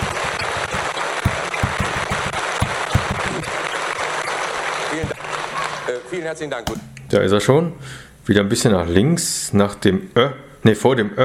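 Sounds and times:
crowd applause: 0.0s - 6.4s
speech: 5.9s - 11.2s.

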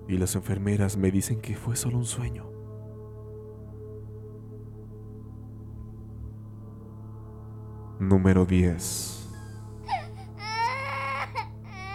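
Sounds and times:
speech: 0.1s - 2.6s, 8.0s - 9.2s
girl crying inconsolably in an abandoned hospital: 9.4s - 11.9s.

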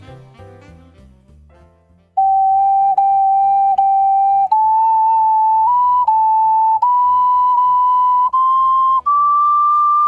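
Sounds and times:
ocarina being played: 2.2s - 10.0s.

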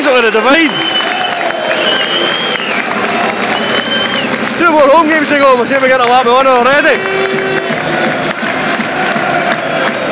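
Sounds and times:
football fans applauding in stadium: 0.0s - 10.1s
speech: 0.2s - 1.0s, 4.7s - 7.4s.

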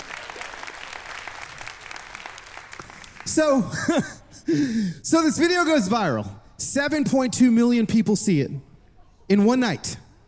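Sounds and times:
audience applause: 0.0s - 3.4s
speech: 3.3s - 8.7s, 9.3s - 10.0s
laughter: 3.6s - 4.4s.

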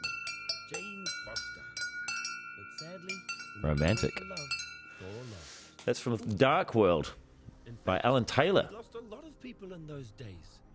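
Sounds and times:
wind chimes: 0.0s - 5.8s
speech: 2.8s - 10.7s.

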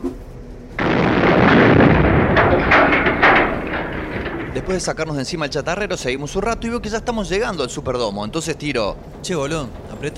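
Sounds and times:
low hum: 0.1s - 10.1s
rumble and crackling debris: 0.6s - 10.1s
dynamite explosion: 0.8s - 5.2s
speech: 4.7s - 10.1s.

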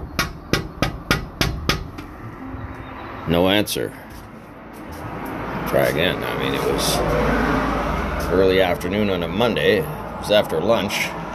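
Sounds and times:
knocking on huge double doors: 0.0s - 2.1s
speech: 3.2s - 4.2s, 5.7s - 7.7s, 8.3s - 11.2s.

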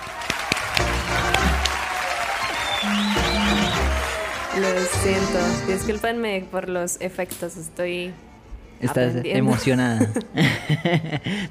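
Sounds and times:
applause: 0.0s - 5.6s
speech: 4.6s - 11.4s
laughter: 9.5s - 11.4s.

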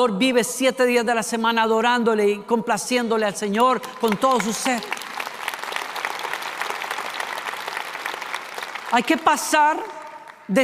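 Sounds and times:
speech: 0.0s - 5.0s, 8.9s - 10.6s
applause for church volunteers: 3.6s - 10.6s.

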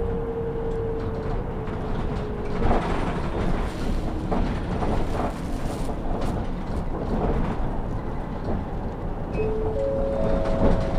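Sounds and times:
bus engine rumble: 0.0s - 10.9s.

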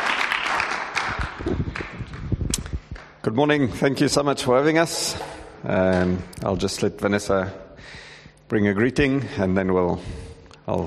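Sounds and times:
audience applause: 0.0s - 2.2s
speech: 3.3s - 10.8s.

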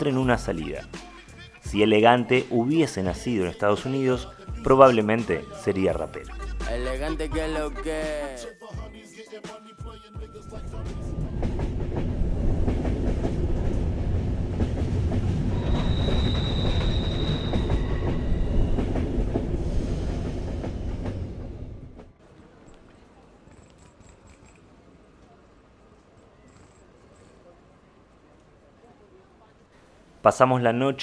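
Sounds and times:
speech: 0.0s - 1.1s, 1.7s - 8.6s, 30.2s - 31.0s
train rolling into its last stop with rhythmic wheel clatter: 10.6s - 23.0s
high metallic train wheel squeal: 15.5s - 21.0s.

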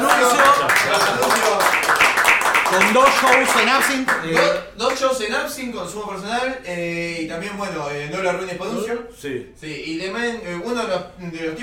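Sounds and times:
audience applause: 0.0s - 4.6s
speech: 2.8s - 11.6s.

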